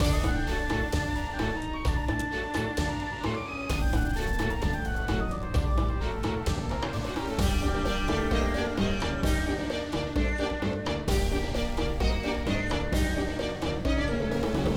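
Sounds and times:
boss battle background music: 0.0s - 14.7s.

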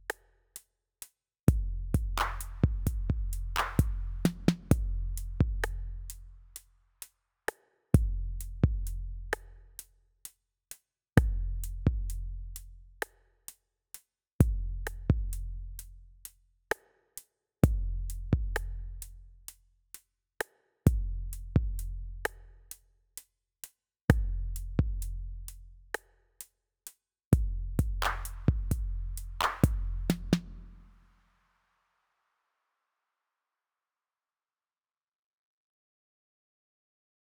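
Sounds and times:
drums and percussion: 1.5s - 31.0s.

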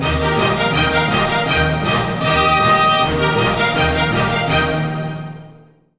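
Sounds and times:
costume orchestra playing: 0.0s - 5.6s.

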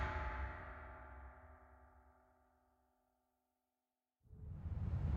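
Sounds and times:
real percussion phrase: 0.0s - 1.1s.

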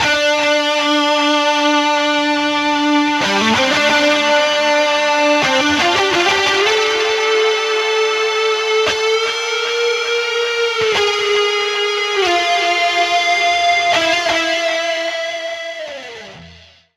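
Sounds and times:
metal guitar solo: 0.0s - 16.9s.

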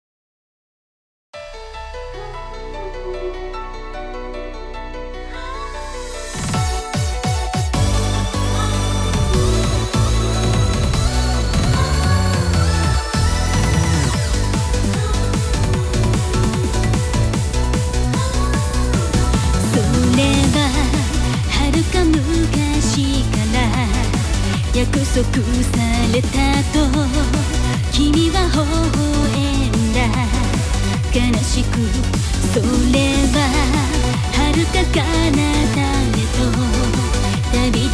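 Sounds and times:
rhythm: 6.2s - 37.9s.

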